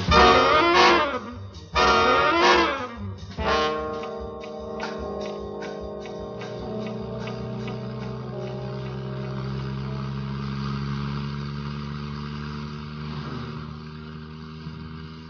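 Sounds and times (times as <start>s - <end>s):
car driving: 0.0s - 15.2s.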